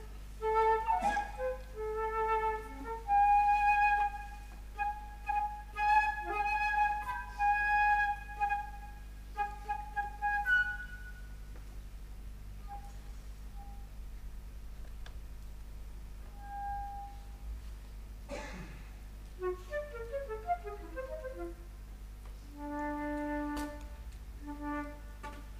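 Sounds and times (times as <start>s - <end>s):
flute: 0.0s - 11.4s, 12.6s - 13.9s, 16.3s - 17.4s, 19.4s - 21.7s, 22.4s - 25.5s.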